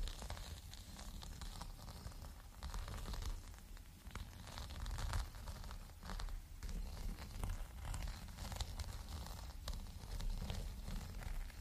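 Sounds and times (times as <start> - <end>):
fingers scratching and rubbing a green bumpy rug: 0.0 - 3.5, 4.1 - 11.5.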